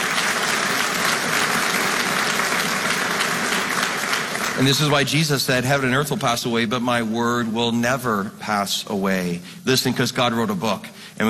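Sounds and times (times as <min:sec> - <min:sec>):
audience clapping: 0:00.0 - 0:06.0
speech: 0:04.6 - 0:11.2.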